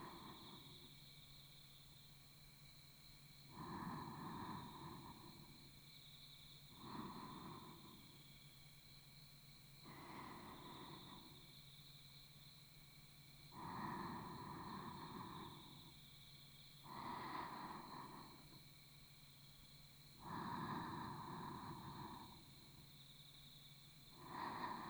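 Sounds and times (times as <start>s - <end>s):
sleep breathing on the right side: 3.6s - 5.6s, 6.8s - 8.1s, 9.9s - 11.4s, 13.5s - 15.9s, 16.9s - 18.6s, 20.2s - 22.7s, 24.2s - 24.8s.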